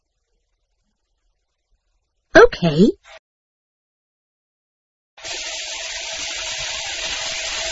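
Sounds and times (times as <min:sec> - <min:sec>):
speech: 0:02.5 - 0:03.2
water running from a kitchen tap: 0:05.2 - 0:07.7.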